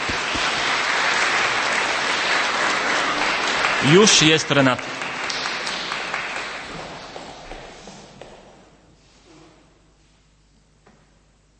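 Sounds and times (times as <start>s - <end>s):
audience applauding singers at a concert: 0.0s - 7.8s
speech: 3.8s - 4.9s.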